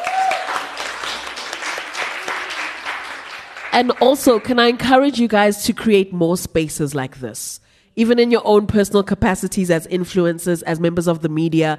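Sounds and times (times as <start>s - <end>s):
audience clapping: 0.0s - 5.0s
speech: 3.8s - 11.7s.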